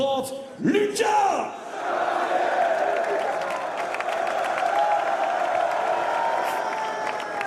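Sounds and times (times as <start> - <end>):
speech: 0.0 - 1.6
stadium crowd cheering and applauding goalkeeper: 2.0 - 7.4.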